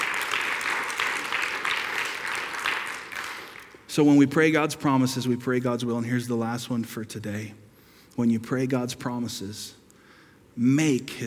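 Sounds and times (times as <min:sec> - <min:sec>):
audience applause: 0:00.0 - 0:03.9
speech: 0:04.0 - 0:07.6, 0:08.2 - 0:09.8, 0:10.6 - 0:11.2.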